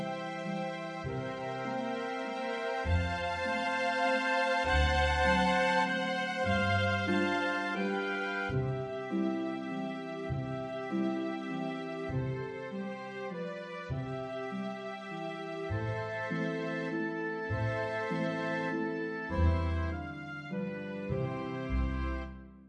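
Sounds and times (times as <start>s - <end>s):
waltz played on flute: 0.0s - 22.6s.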